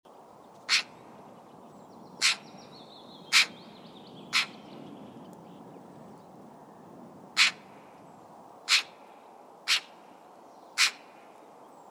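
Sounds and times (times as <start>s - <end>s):
Eurasian magpie giving harsh broadband chack notes: 0.7s - 1.0s, 2.2s - 2.5s, 3.3s - 3.6s, 4.3s - 4.6s, 7.4s - 7.6s, 8.7s - 9.0s, 9.7s - 10.0s, 10.8s - 11.1s.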